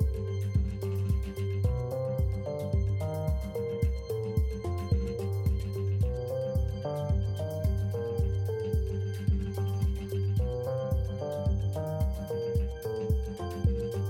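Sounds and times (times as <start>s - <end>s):
balloon bonus game background music: 0.0s - 14.0s.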